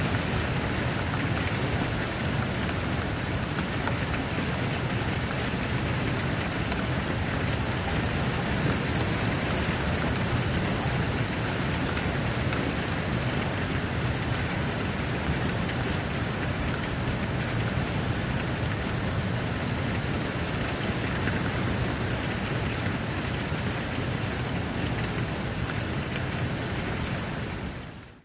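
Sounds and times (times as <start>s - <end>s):
rain: 0.0s - 28.2s
wind: 0.0s - 28.2s.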